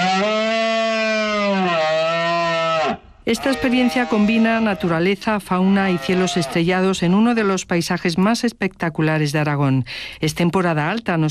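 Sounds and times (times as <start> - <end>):
red deer stag bellowing during the rut: 0.0 - 6.7
speech: 3.3 - 11.2.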